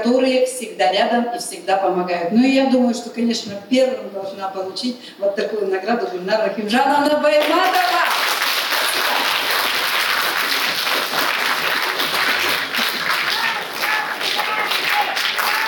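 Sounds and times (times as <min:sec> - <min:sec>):
speech: 0:00.0 - 0:08.2
loud audience applause: 0:07.4 - 0:15.6.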